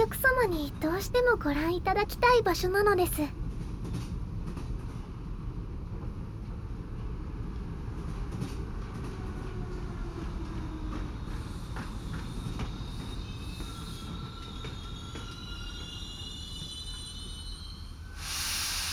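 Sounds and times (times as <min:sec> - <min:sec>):
train rumbling on rails: 0:00.0 - 0:18.9
speech: 0:00.4 - 0:04.0
train wheels squealing: 0:11.1 - 0:18.9
hiss: 0:11.2 - 0:18.9.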